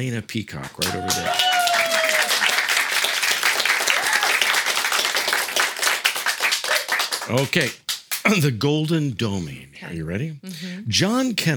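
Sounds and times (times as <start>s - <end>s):
speech: 0.0s - 1.6s, 7.3s - 11.5s
live audience clapping at an evening quiz show: 0.6s - 8.5s.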